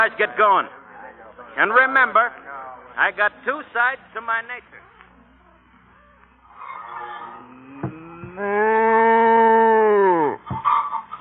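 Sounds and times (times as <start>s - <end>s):
speech: 0.0s - 0.8s, 1.5s - 2.4s, 3.0s - 4.8s
cow in a barn: 6.5s - 11.0s.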